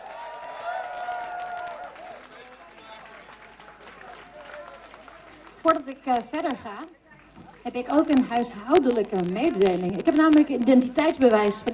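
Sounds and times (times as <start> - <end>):
audience applause: 0.0 - 7.7
speech: 5.6 - 7.0, 7.6 - 11.7.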